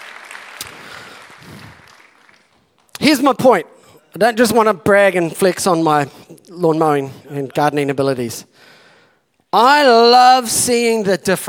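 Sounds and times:
audience clapping: 0.0s - 3.4s
speech: 3.0s - 8.7s, 9.5s - 11.4s.

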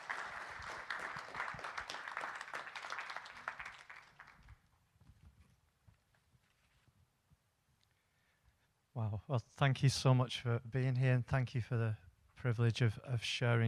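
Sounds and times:
church congregation applauding to welcome guests: 0.0s - 4.7s
speech: 9.0s - 13.6s.

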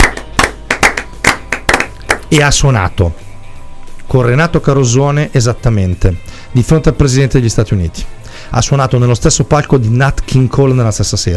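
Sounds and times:
audience applause: 0.0s - 2.2s
speech: 2.3s - 3.2s, 4.1s - 11.3s.

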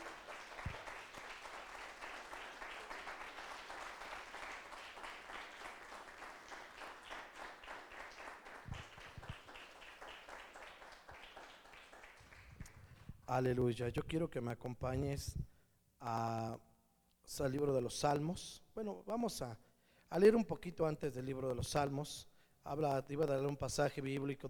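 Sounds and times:
audience applause: 0.0s - 12.9s
speech: 13.3s - 16.7s, 17.3s - 24.4s.

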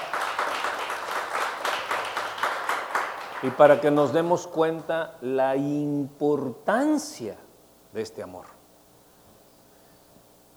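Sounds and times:
crowd applauding: 0.0s - 4.2s
speech: 3.4s - 8.6s.

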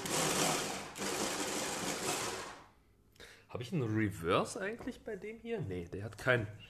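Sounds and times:
blender chopping vegetables: 0.0s - 2.7s
speech: 3.5s - 6.6s.

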